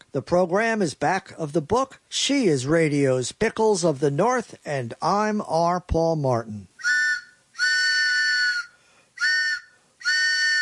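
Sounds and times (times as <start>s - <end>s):
speech: 0.1s - 7.0s
train whistle blasts: 6.8s - 10.6s.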